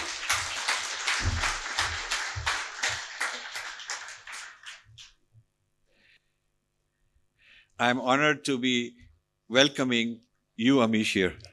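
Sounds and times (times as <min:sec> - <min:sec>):
applause welcoming a speaker at the Nehru Centre in London: 0:00.0 - 0:05.2
speech: 0:07.8 - 0:11.5.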